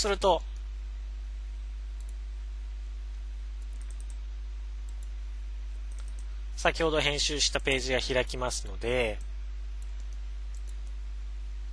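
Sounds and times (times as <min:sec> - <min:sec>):
speech: 0:00.0 - 0:00.5, 0:06.6 - 0:09.3
low steady hum: 0:00.0 - 0:11.7
computer mouse clicks on a details button: 0:02.0 - 0:02.2, 0:03.6 - 0:04.2, 0:04.8 - 0:05.2, 0:05.9 - 0:06.3, 0:09.2 - 0:11.0.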